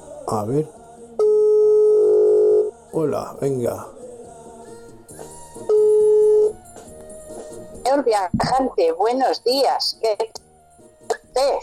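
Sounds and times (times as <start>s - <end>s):
speech: 0.3s - 0.8s, 2.9s - 4.0s, 7.9s - 10.4s, 11.4s - 11.6s
telephone line calling tone: 1.2s - 2.7s, 5.7s - 6.6s.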